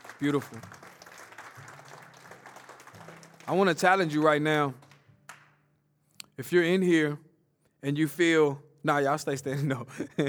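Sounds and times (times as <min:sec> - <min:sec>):
audience clapping hands: 0:00.0 - 0:05.7
speech: 0:00.2 - 0:00.8, 0:03.5 - 0:04.8, 0:06.4 - 0:07.2, 0:07.8 - 0:10.2.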